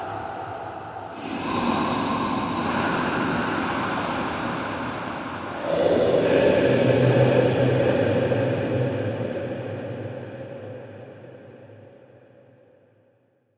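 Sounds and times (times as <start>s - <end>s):
scary soundscape: 1.1s - 11.3s.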